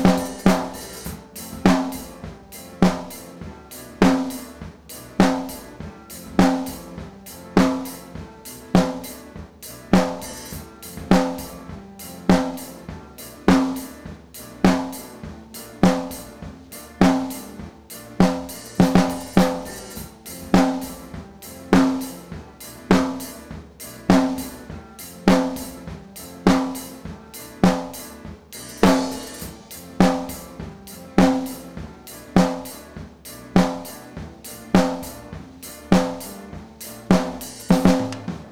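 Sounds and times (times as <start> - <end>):
snare drum: 0.0 - 38.5.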